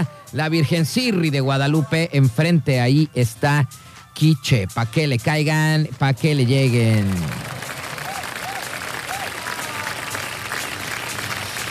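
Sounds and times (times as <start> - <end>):
speech: 0.0 - 7.5
audience applause: 6.9 - 11.6.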